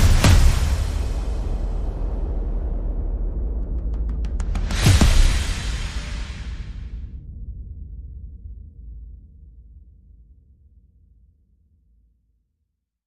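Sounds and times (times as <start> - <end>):
drums and percussion: 0.0 - 7.1.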